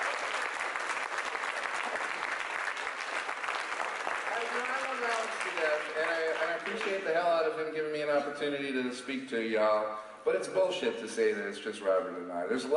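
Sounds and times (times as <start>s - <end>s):
audience applause for the cannabis lawyers: 0.0s - 7.0s
speech: 5.0s - 12.7s.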